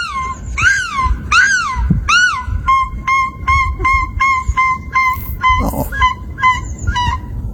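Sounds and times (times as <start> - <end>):
gulls calling: 0.0 - 7.5
woman imitating gull calls: 5.0 - 6.2.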